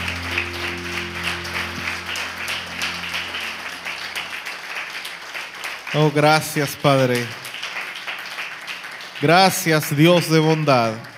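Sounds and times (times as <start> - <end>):
audience applauding loudly: 0.0 - 11.1
speech: 5.9 - 7.4, 9.2 - 11.1.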